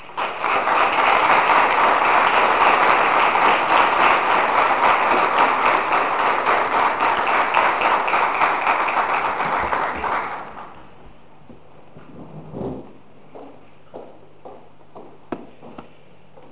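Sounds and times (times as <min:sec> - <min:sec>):
audience applause welcoming the speaker: 0:00.0 - 0:10.8.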